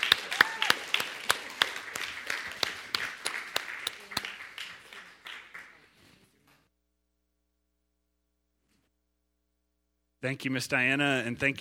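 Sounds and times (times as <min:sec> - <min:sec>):
audience applause: 0:00.0 - 0:06.0
speech: 0:10.2 - 0:11.5.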